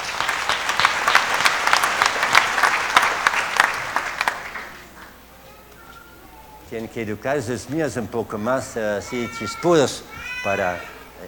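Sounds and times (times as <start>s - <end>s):
small audience clapping for a birthday child: 0.0s - 5.2s
speech: 6.7s - 11.2s.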